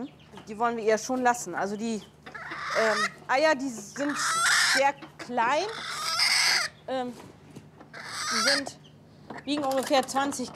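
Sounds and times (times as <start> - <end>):
speech: 0.0 - 2.2, 2.8 - 6.0, 6.9 - 7.3, 8.4 - 8.8, 9.5 - 10.5
hen alarm squawks protecting eggs: 2.3 - 3.2, 4.0 - 6.9, 7.9 - 8.8.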